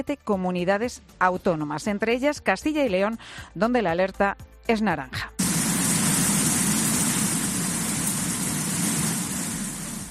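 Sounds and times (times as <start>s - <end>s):
speech: 0.0s - 5.4s
floodwater rushing down streets: 5.4s - 10.0s.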